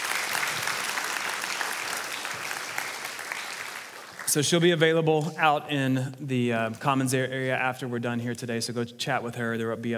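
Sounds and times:
audience applause: 0:00.0 - 0:04.5
speech: 0:04.3 - 0:09.9.

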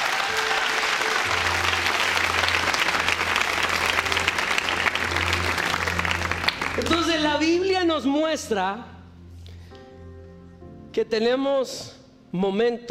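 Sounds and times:
large crowd clapping loudly: 0:00.0 - 0:07.4
speech: 0:07.9 - 0:08.9, 0:11.0 - 0:12.8.

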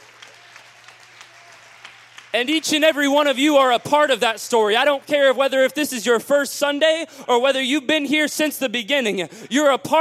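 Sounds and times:
audience clapping hands: 0:00.0 - 0:05.7
speech: 0:02.3 - 0:10.0.

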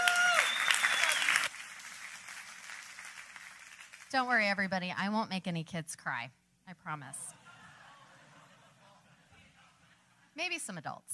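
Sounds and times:
audience applause at a church student ministries gathering: 0:00.0 - 0:04.1
speech: 0:04.1 - 0:07.4, 0:10.4 - 0:11.1
laughter: 0:07.3 - 0:10.3.

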